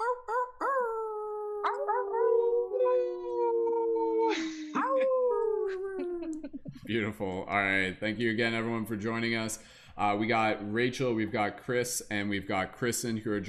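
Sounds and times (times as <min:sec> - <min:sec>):
people imitating wolf howls: 0:00.0 - 0:06.3
speech: 0:06.9 - 0:13.4.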